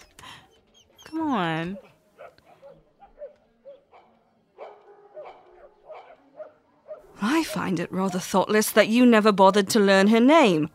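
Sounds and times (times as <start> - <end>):
dogs barking at each other: 0.8 - 7.8
speech: 1.1 - 1.9, 7.2 - 10.7.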